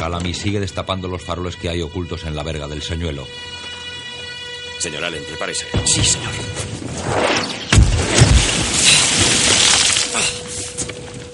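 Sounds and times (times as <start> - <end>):
speech: 0.0 - 3.6, 4.8 - 7.6
cannon fire from the warship Acheron at night at sea: 7.7 - 9.7.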